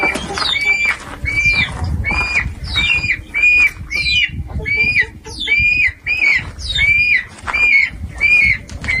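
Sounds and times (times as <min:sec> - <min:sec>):
birds calling: 0:00.0 - 0:08.9
low rumbling background: 0:00.0 - 0:08.9.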